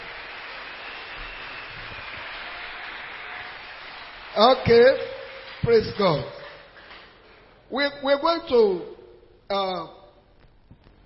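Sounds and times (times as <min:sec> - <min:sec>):
audience clapping hands: 0:00.0 - 0:07.2
speech: 0:04.4 - 0:06.4, 0:07.7 - 0:08.9, 0:09.5 - 0:10.0.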